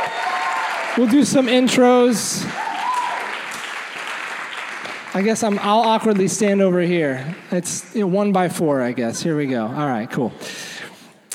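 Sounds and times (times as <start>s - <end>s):
audience applause welcoming a panel: 0.0s - 8.0s
speech: 1.0s - 2.7s, 5.2s - 10.6s.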